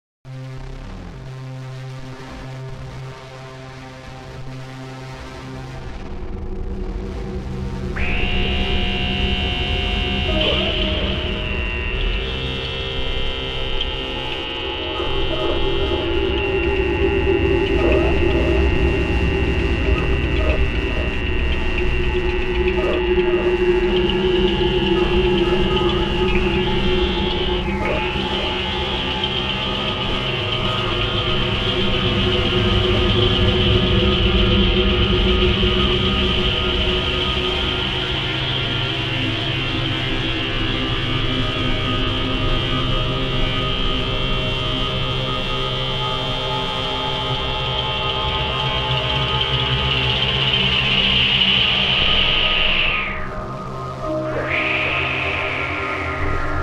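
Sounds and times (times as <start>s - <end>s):
drone: 0.3s - 56.6s.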